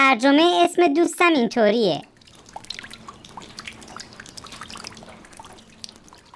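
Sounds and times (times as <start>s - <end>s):
speech: 0.1s - 2.1s
water dripping: 2.0s - 6.3s.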